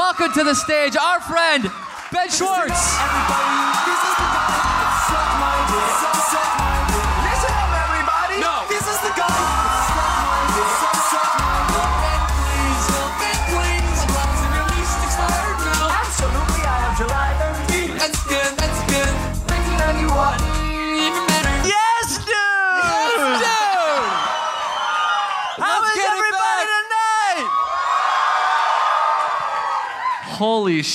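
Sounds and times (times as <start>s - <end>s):
audience applause: 0.0s - 18.1s, 22.8s - 26.2s, 27.4s - 30.2s
audience cheering: 0.0s - 30.8s
speech: 0.2s - 6.8s, 30.4s - 30.9s.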